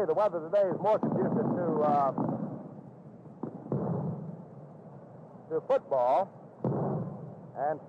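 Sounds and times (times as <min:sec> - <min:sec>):
speech: 0:00.0 - 0:02.4, 0:05.5 - 0:06.4, 0:07.6 - 0:07.8
low steady rumble: 0:00.0 - 0:07.8
rockets and fireworks set off at a baseball stadium: 0:00.6 - 0:04.7, 0:06.6 - 0:07.8.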